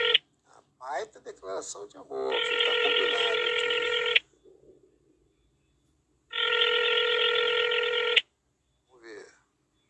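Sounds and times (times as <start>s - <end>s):
phone ringback tone of an outgoing call: 0.0s - 0.2s, 2.3s - 4.4s, 6.3s - 8.2s
speech: 1.0s - 4.0s.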